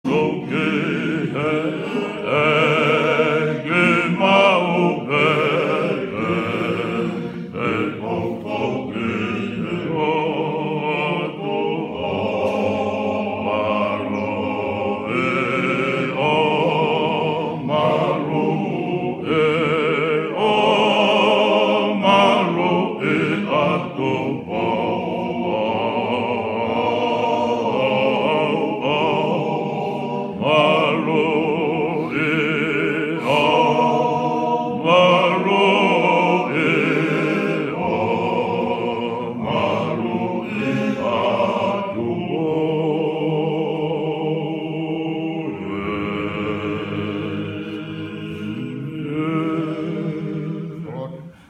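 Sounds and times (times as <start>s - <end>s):
Tongan hymn: 0.0s - 51.4s.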